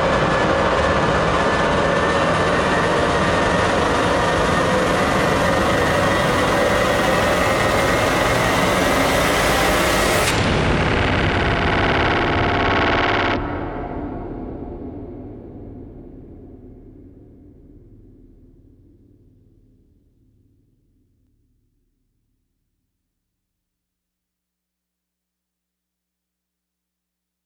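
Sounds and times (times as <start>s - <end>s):
rising sound: 0.1s - 14.1s.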